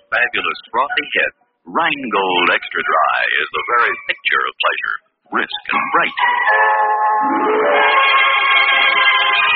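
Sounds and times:
speech: 0.2s - 9.5s
string orchestra music: 6.3s - 8.8s.

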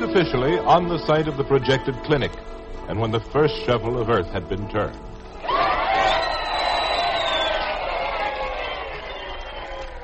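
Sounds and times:
speech: 0.1s - 5.7s
crowd cheering: 5.4s - 10.0s.

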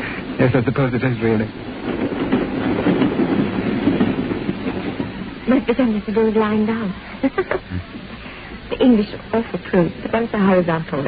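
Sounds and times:
train passing in a tube station: 0.0s - 11.0s
train wheels clattering: 0.0s - 11.0s
speech: 0.4s - 2.3s, 5.5s - 7.9s, 8.7s - 11.0s.

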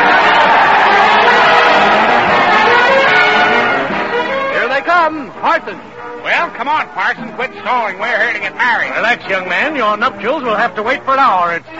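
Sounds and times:
crowd cheering: 0.0s - 9.1s
speech: 5.6s - 11.7s.

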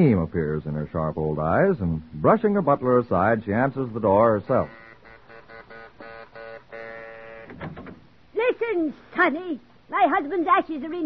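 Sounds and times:
speech: 0.0s - 4.8s, 8.7s - 11.0s
buzzing doorbell: 4.5s - 7.6s.

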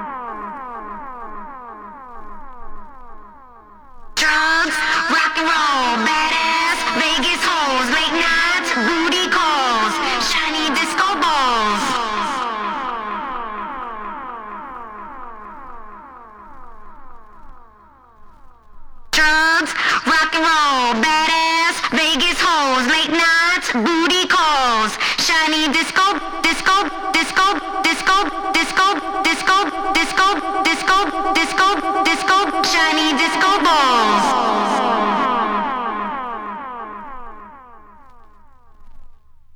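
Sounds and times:
a cappella singing: 4.2s - 14.0s, 19.2s - 37.0s.

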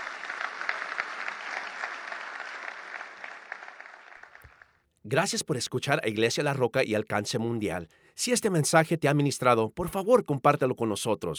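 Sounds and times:
audience applause: 0.0s - 4.7s
speech: 5.0s - 11.3s.

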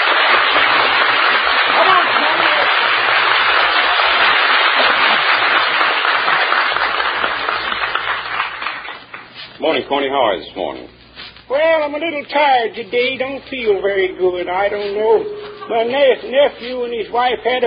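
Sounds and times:
studio audience cheering and applauding: 0.0s - 9.0s
speech: 9.9s - 17.6s.

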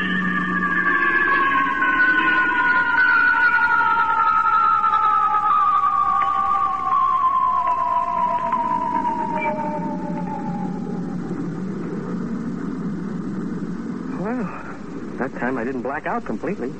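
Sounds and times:
two bright whining tones gliding downward as a spaceship comes out of star drive: 0.0s - 16.7s
continuous engine-like hum of a spaceship: 9.5s - 16.7s
speech: 15.6s - 16.7s.

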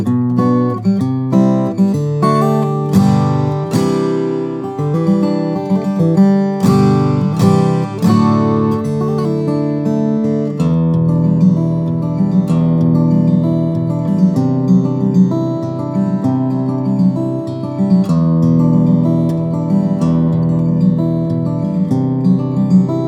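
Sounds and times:
steel string flattop acoustic guitar: 0.0s - 23.0s.

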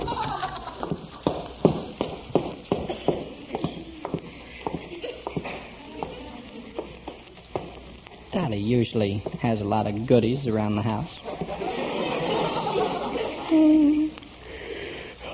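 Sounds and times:
laughter: 0.0s - 1.3s, 2.9s - 6.8s, 11.2s - 14.1s
footsteps going downstairs inside a house: 0.0s - 8.3s, 9.0s - 9.6s, 11.3s - 11.6s
speech: 8.5s - 11.3s.

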